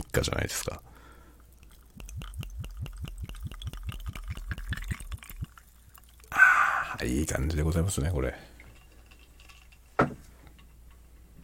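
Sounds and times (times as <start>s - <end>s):
speech: 0.2s - 0.9s, 7.0s - 8.5s
whiskey being poured into a glass: 1.2s - 9.9s.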